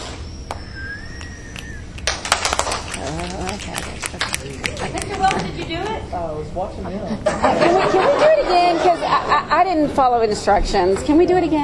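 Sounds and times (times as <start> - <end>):
group of children doing a clap: 1.2 - 6.0
speech: 3.2 - 11.6
laughter: 4.2 - 6.0, 7.0 - 9.8.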